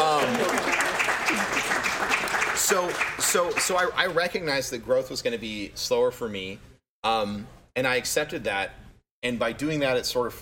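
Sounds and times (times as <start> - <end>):
audience applause: 0.0 - 4.0
speech: 2.7 - 10.4.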